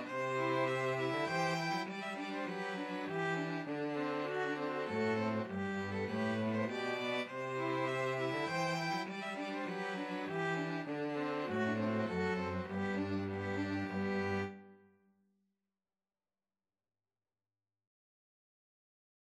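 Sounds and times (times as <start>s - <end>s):
polska on two violins and cello: 0.0s - 14.6s.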